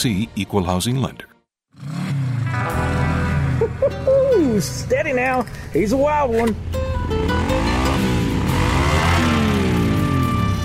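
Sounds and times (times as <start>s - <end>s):
speech: 0.0s - 2.0s, 3.7s - 8.1s
motorcycle engine revving: 1.7s - 3.7s, 7.1s - 10.6s.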